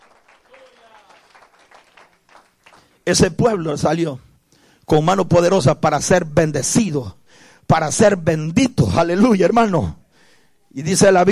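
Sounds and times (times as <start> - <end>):
audience applauding: 0.0 - 3.0
speech: 3.1 - 4.3, 4.9 - 10.0, 10.7 - 11.2.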